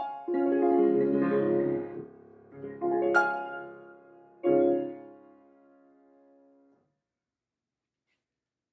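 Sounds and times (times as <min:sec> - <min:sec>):
piano improvisation in D flat major: 0:00.0 - 0:06.6.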